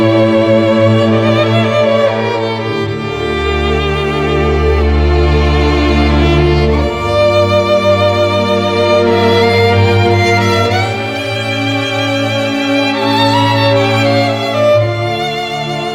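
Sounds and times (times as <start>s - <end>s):
sad solo violin: 0.0s - 15.9s.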